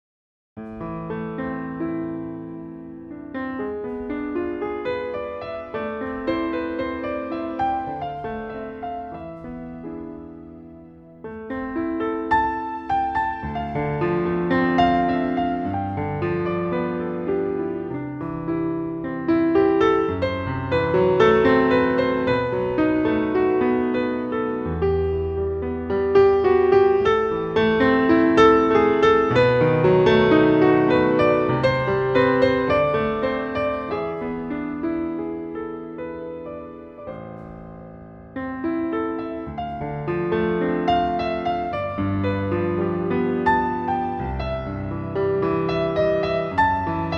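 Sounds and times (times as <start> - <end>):
improvised music: 0.6 - 47.1.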